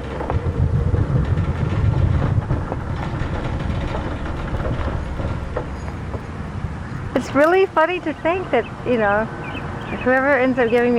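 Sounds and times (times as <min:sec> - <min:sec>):
highway traffic heard from the roadside: 0:00.0 - 0:10.9
speech: 0:07.3 - 0:10.9.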